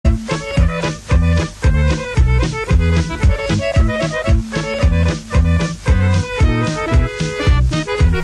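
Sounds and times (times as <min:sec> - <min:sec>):
Serbian music: 0:00.1 - 0:08.2.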